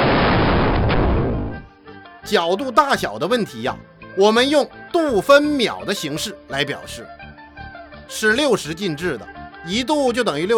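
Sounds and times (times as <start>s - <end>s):
explosion sound effect: 0.0s - 1.6s
speech: 2.3s - 7.2s, 8.1s - 10.5s.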